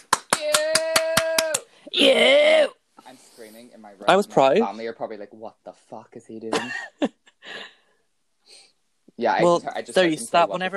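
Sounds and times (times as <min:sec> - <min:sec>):
hand clapping applause: 0:00.0 - 0:01.7
speech: 0:02.0 - 0:02.5, 0:03.4 - 0:07.7, 0:09.2 - 0:10.7.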